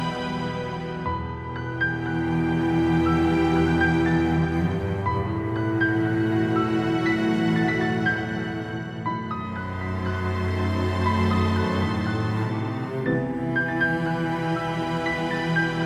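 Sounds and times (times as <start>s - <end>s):
dark orchestral classical music: 0.0s - 15.8s.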